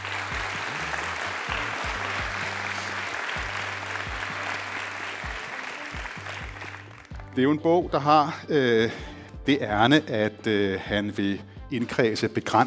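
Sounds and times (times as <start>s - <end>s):
audience applauding a preacher at a book event: 0.0s - 7.4s
speech: 7.4s - 12.6s.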